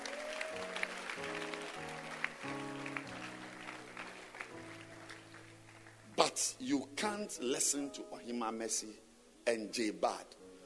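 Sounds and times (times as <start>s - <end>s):
audience clapping: 0.0s - 6.6s
speech: 6.4s - 10.4s.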